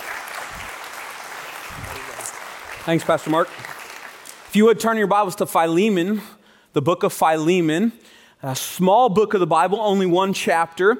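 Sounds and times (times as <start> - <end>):
church congregation clapping to welcome the preacher before the sermon: 0.0 - 5.3
speech: 2.8 - 3.7, 4.5 - 10.9.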